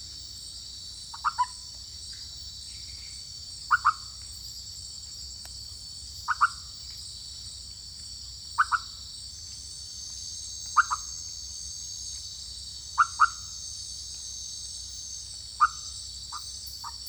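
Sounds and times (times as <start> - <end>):
Leptodactylus frog calling in French Guiana: 3.7 - 4.0, 10.8 - 11.1, 13.0 - 13.5.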